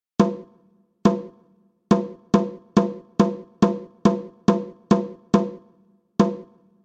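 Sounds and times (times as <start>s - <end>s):
snare drum rhythm: 1.1s - 5.6s, 6.2s - 6.6s.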